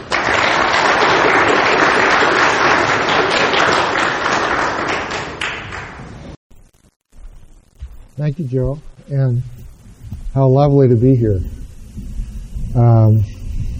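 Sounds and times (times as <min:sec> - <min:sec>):
audience applause welcoming a speaker: 0:00.0 - 0:06.2
speech: 0:08.2 - 0:09.6, 0:10.4 - 0:12.1, 0:12.8 - 0:13.4.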